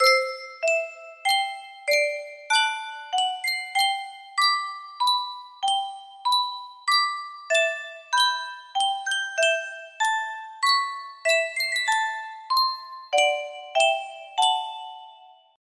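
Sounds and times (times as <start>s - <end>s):
Yunsheng custom tune music box: 0.0s - 15.6s.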